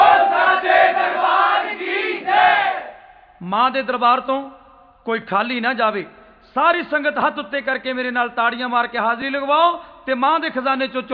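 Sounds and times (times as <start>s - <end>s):
devotional crowd shouting a Jaikara in praise of the Mother goddess: 0.0s - 3.0s
speech: 3.5s - 11.1s.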